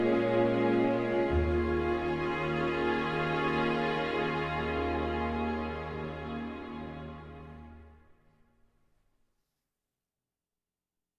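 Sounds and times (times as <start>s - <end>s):
cello and orchestra: 0.0s - 8.0s.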